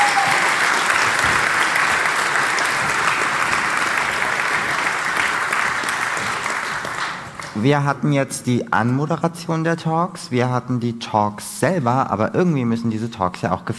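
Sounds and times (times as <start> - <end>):
audience applause: 0.0 - 7.6
speech: 7.6 - 13.7.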